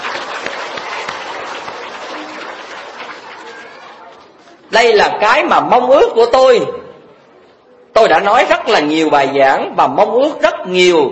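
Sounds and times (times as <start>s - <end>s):
audience applauding children on International Children's Day: 0.0s - 4.4s
speech: 4.7s - 6.8s, 8.0s - 11.1s.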